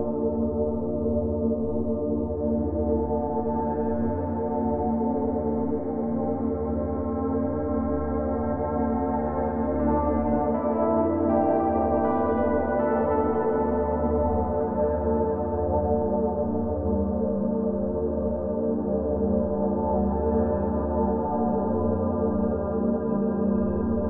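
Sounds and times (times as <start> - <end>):
ambient soundscape piano: 0.0 - 24.0.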